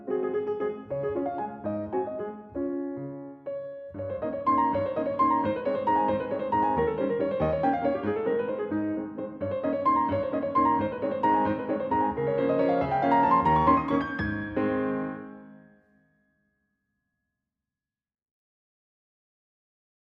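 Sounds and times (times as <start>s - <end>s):
waltz on a Steinway D-274 grand piano: 0.0s - 15.8s.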